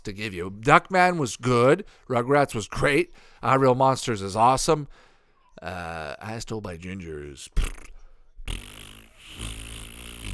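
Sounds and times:
speech: 0.0 - 7.9
fart: 7.6 - 10.3.

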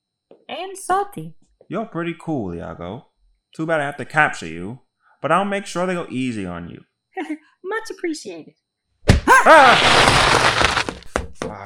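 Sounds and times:
speech: 0.6 - 8.6, 9.4 - 10.8, 11.4 - 11.6
bucket of popcorn knocked over and spilling onto the floor: 9.5 - 11.2.

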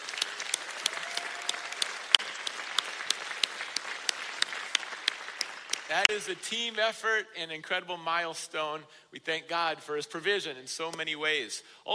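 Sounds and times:
audience applause for graduating students: 0.0 - 6.1
speech: 5.9 - 11.9.

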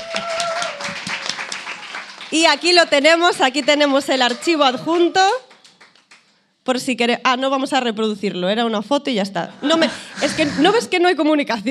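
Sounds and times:
applause: 0.0 - 6.4
speech: 2.3 - 5.5, 6.6 - 11.6.

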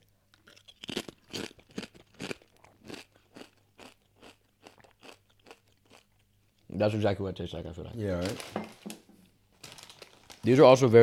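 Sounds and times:
chewing Doritos Cool Ranch tortilla chips: 0.3 - 6.2
speech: 6.8 - 8.8, 10.4 - 11.0.

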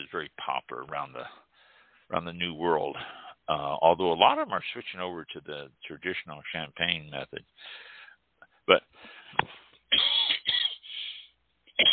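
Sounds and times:
speech: 0.1 - 1.5, 2.1 - 7.9, 8.7 - 10.2
speaker coughing and clearing throat mid-talk: 9.4 - 11.0, 11.7 - 11.9.

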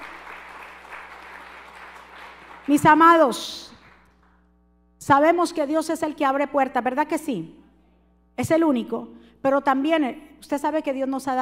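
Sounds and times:
audience applauding loudly: 0.0 - 3.0
speech: 2.6 - 3.7, 5.1 - 7.6, 8.4 - 11.3.

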